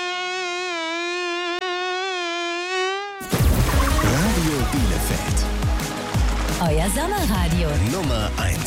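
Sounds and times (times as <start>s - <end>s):
mosquito buzzing: 0.0s - 4.0s
speech: 4.6s - 5.9s, 6.6s - 8.6s.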